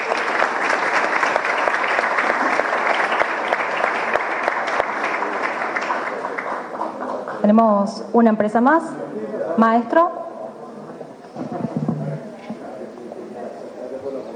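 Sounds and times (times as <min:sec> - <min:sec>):
audience applause: 0:00.0 - 0:07.5
speech: 0:07.5 - 0:10.2.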